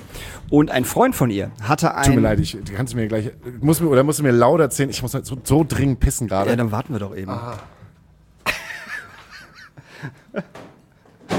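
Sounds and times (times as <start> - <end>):
speech: 0.5 - 7.8, 10.0 - 10.6
laughter: 8.4 - 10.7
door being banged and breaking: 10.5 - 11.3.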